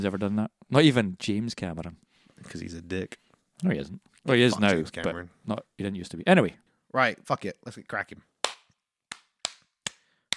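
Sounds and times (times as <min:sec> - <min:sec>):
speech: 0:00.0 - 0:08.3
sync hand claps for lining up audio: 0:08.4 - 0:10.3.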